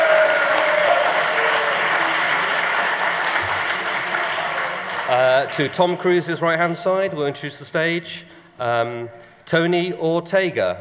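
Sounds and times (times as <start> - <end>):
audience applause: 0.0 - 6.2
speech: 5.4 - 10.7.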